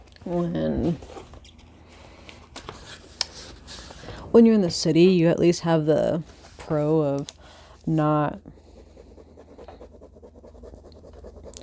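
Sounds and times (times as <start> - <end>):
speech: 0.3 - 1.3, 4.4 - 8.6
drawing on paper: 8.0 - 11.6.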